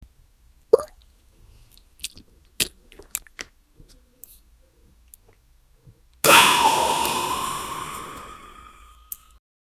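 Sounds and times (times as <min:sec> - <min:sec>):
person vaping: 0:06.2 - 0:09.4.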